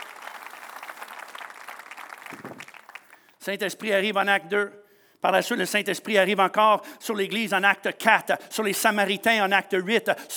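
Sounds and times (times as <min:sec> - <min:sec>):
church congregation applauding: 0:00.0 - 0:03.4
speech: 0:03.4 - 0:10.3.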